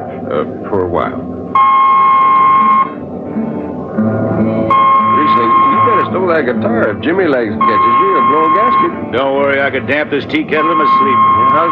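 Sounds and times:
low humming drone: 0:00.0 - 0:11.7
speech: 0:00.3 - 0:01.7, 0:06.2 - 0:11.7
danger peeper electronic beep: 0:01.6 - 0:03.0, 0:04.7 - 0:06.1, 0:07.6 - 0:09.0, 0:10.6 - 0:11.7.

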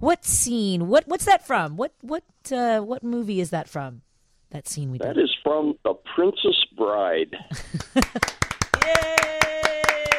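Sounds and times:
speech: 0:00.0 - 0:10.0
one person clapping: 0:07.7 - 0:10.1.

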